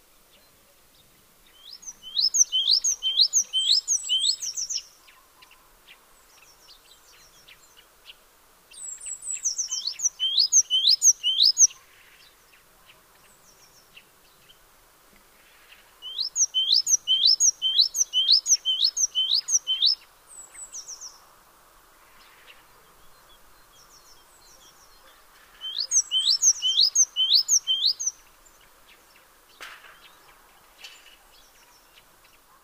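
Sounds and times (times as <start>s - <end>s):
hiss: 0.0s - 32.6s
small birds chirping: 0.2s - 21.4s, 22.0s - 32.6s
great tit calls: 1.7s - 5.6s, 9.1s - 12.0s, 16.0s - 21.2s, 22.4s - 28.6s.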